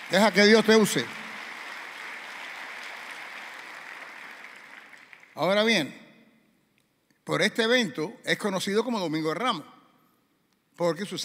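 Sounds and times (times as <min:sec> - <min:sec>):
audience applauding: 0:00.0 - 0:05.6
speech: 0:00.1 - 0:01.2, 0:05.4 - 0:06.0, 0:07.3 - 0:09.8, 0:10.8 - 0:11.2.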